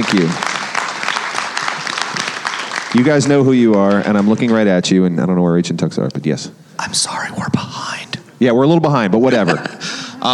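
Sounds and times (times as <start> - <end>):
round of applause: 0.0 - 4.8
speech: 0.1 - 0.5, 2.9 - 7.8, 8.4 - 10.3
laughter: 9.2 - 10.3.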